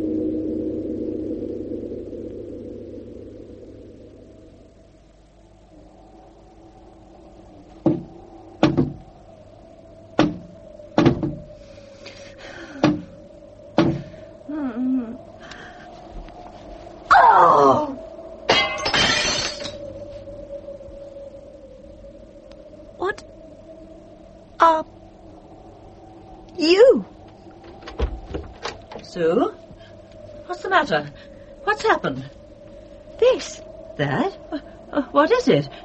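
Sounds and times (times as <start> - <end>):
low hum: 0.0 - 35.8
something knocking against a window: 7.8 - 9.0, 10.2 - 11.4, 12.8 - 13.0
speech: 30.9 - 31.2, 32.0 - 32.4, 34.0 - 34.3, 35.2 - 35.8.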